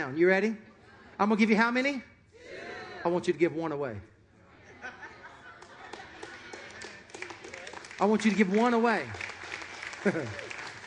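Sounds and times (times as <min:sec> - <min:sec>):
speech: 0:00.0 - 0:02.1, 0:03.0 - 0:04.1, 0:08.0 - 0:09.2, 0:10.0 - 0:10.4
laughter: 0:04.4 - 0:06.6, 0:09.7 - 0:10.8
audience clapping: 0:05.6 - 0:10.8.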